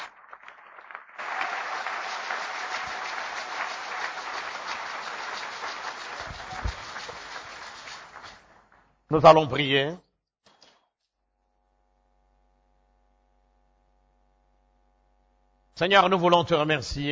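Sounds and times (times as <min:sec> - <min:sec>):
congregation clapping during a church service: 0:00.0 - 0:09.2
speech: 0:09.1 - 0:10.1, 0:15.8 - 0:17.1.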